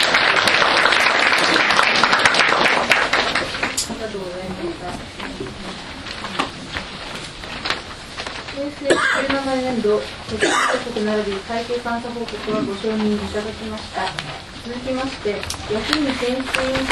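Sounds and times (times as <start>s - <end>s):
audience applause: 0.0s - 3.8s
speech: 8.8s - 16.9s.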